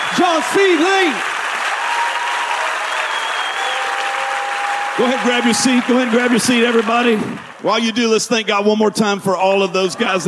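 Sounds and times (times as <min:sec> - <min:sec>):
audience applauding speakers at a stage event: 0:00.0 - 0:08.8
speech: 0:00.2 - 0:01.3, 0:05.0 - 0:10.2.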